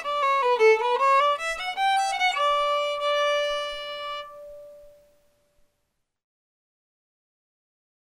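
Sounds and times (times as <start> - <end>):
fiddle playing a hornpipe: 0.0 - 5.0.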